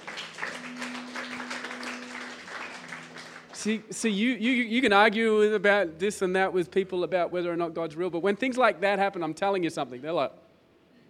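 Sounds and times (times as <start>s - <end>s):
audience clapping: 0.0s - 4.0s
speech: 3.6s - 10.4s.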